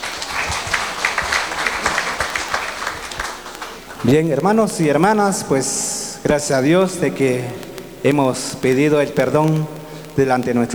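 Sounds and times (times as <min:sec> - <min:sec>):
crowd applauding: 0:00.0 - 0:05.4
speech: 0:04.0 - 0:10.7.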